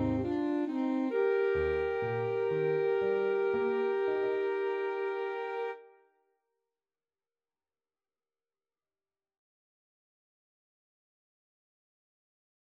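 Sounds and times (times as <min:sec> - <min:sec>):
alto saxophone duet: 0:00.0 - 0:05.9.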